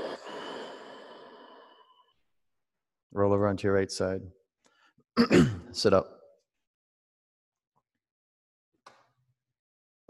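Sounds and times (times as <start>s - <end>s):
long airy exhalation in a guided breathing exercise: 0.0s - 2.2s
speech: 3.1s - 4.4s, 5.2s - 6.2s.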